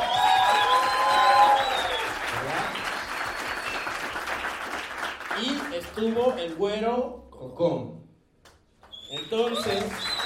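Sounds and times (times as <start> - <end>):
whistles and cheers: 0.0 - 4.3, 8.9 - 10.2
audience applause: 0.0 - 6.5, 9.2 - 10.2
speech: 6.0 - 8.0, 9.2 - 10.1.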